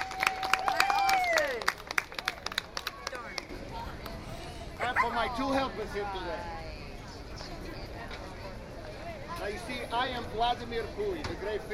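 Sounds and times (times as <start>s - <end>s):
round of applause: 0.0s - 3.5s
speech: 5.2s - 6.6s, 9.4s - 11.7s.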